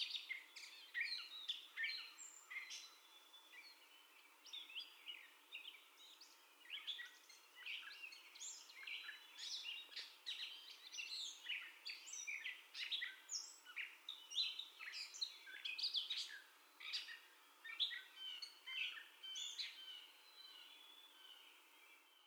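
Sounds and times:
Gray catbird song: 0.0 - 22.2
light hiss: 0.0 - 22.2.

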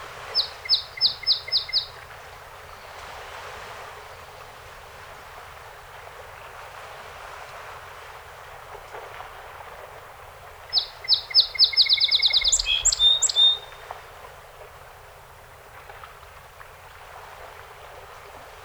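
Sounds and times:
song sparrow songs: 0.2 - 2.1, 10.6 - 14.0.

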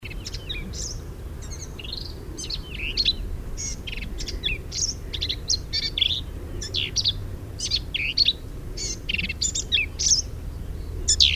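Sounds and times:
Black-capped vireo singing a busy jumbled song: 0.0 - 11.3.

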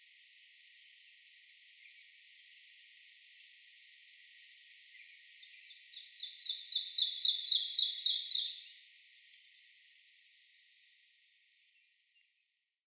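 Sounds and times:
Ovenbird song of fast repeated phrases: 4.3 - 12.8.

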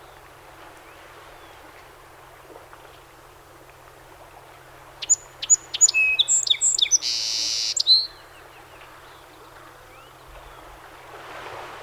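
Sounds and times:
song sparrow singing: 5.0 - 10.3.

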